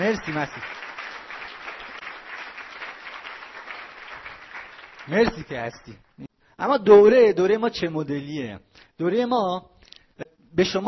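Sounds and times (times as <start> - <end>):
speech: 0.0 - 0.9, 5.1 - 10.8
audience applause: 0.0 - 5.8.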